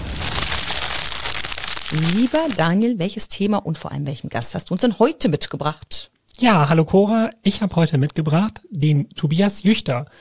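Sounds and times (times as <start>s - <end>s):
snack bag rustling and crinkling: 0.0s - 2.7s
speech: 1.9s - 10.1s.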